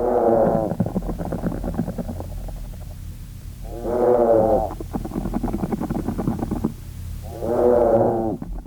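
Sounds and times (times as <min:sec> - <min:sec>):
buzzing vibrating murmur: 0:00.0 - 0:08.6
treehoppers' synchronized moo-like calls: 0:03.6 - 0:04.8, 0:07.3 - 0:08.4.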